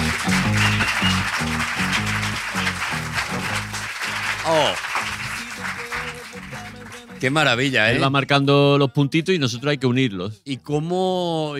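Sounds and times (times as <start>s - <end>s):
audience applause: 0.0s - 7.4s
speech: 1.3s - 2.1s, 4.5s - 4.9s, 7.2s - 11.5s.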